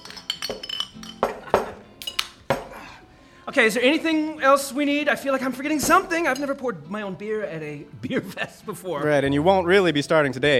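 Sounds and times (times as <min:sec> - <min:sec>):
glasses clinking in a tavern: 0:00.0 - 0:02.8
speech: 0:00.5 - 0:00.7, 0:03.5 - 0:10.5.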